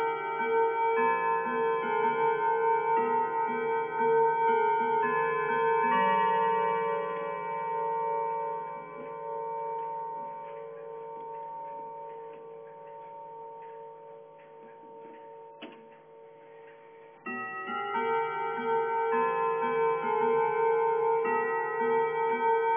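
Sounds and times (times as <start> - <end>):
clock chime tunes: 0.0 - 22.7.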